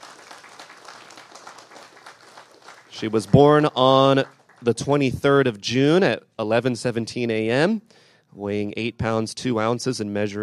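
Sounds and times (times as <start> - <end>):
audience applause for a couple: 0.0 - 4.8
speech: 3.0 - 10.4.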